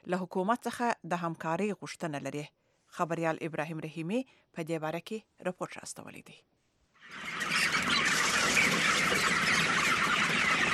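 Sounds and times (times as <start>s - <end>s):
speech: 0.1s - 6.5s
flock of over 2000 chickens clucking and chirping in a large hall on a poultry farm in Khost: 7.0s - 10.7s.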